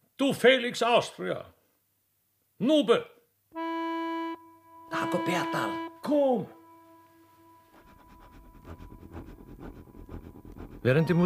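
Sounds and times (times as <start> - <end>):
speech: 0.2 - 1.6, 2.6 - 3.6, 4.9 - 6.6, 10.8 - 11.2
steam locomotive whistle in a radio drama: 3.6 - 7.8.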